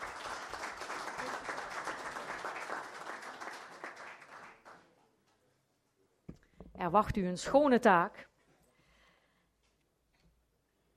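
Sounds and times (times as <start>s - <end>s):
applause: 0.0s - 5.0s
speech: 6.8s - 8.3s.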